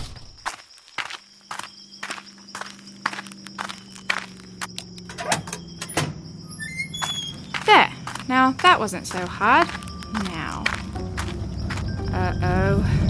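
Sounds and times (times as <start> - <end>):
footsteps sneaking out: 0.4 - 5.1, 6.5 - 12.2
speech: 8.5 - 10.8, 12.2 - 13.0.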